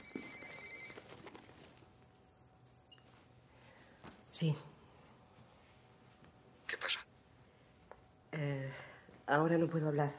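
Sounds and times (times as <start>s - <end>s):
mobile phone ringing: 0.0s - 1.2s
speech: 4.4s - 4.7s, 9.3s - 10.1s.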